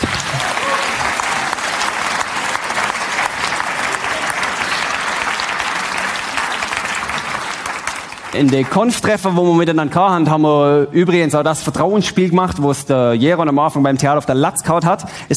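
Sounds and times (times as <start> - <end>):
audience applause: 0.0 - 9.1
speech: 8.4 - 15.3.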